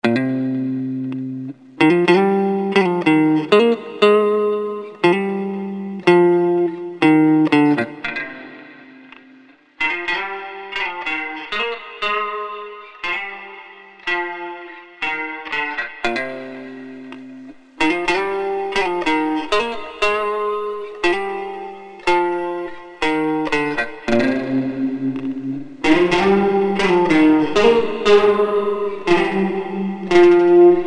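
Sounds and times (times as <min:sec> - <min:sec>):
guitar: 0:00.0 - 0:30.8.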